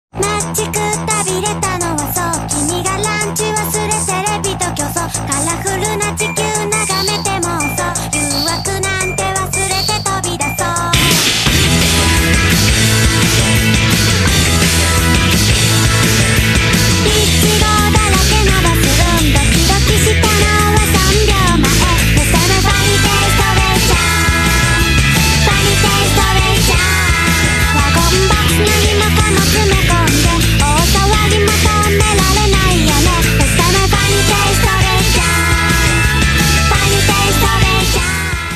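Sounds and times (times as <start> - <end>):
music: 0.1 - 38.5.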